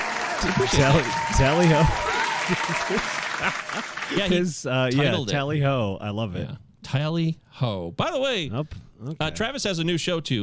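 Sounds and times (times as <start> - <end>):
applause: 0.0 - 4.4
laughter: 0.0 - 5.3
speech: 0.4 - 10.4.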